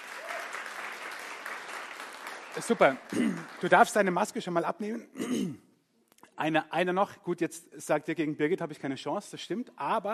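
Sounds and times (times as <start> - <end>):
audience applause: 0.0 - 4.5
speech: 2.6 - 5.6, 6.4 - 10.1.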